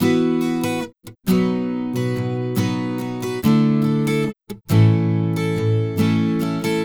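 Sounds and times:
acoustic pop guitar in E major: 0.0s - 6.8s.

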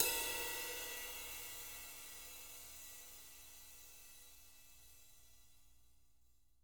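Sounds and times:
ride cymbal: 0.0s - 3.7s.

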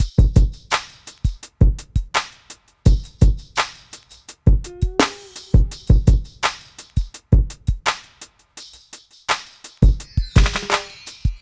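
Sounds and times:
hip hop drums: 0.0s - 11.4s.

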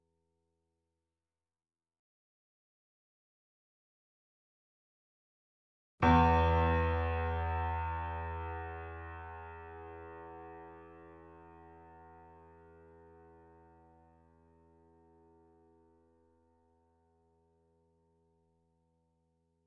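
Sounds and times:
grand piano notes C2 E2 A2: 6.0s - 12.4s.

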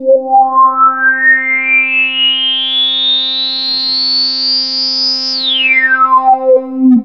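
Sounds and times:
TS10 analog synthesizer: 0.0s - 7.0s.

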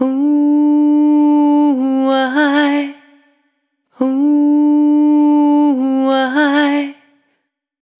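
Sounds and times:
single voice melodic loops: 0.0s - 3.3s, 3.9s - 7.2s.

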